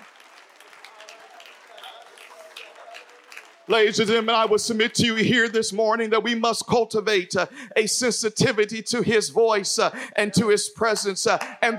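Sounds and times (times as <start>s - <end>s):
crowd clapping: 0.0s - 4.9s, 11.0s - 11.7s
speech: 3.7s - 11.7s.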